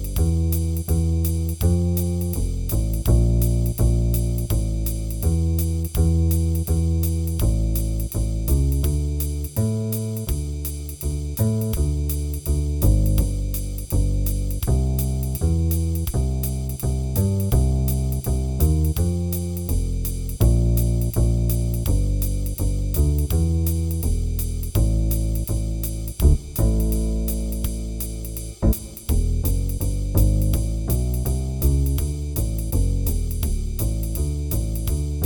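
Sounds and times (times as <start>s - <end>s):
jazz bass solo: 0.0s - 35.2s
jazz improvisation play-along band playing: 26.2s - 32.0s.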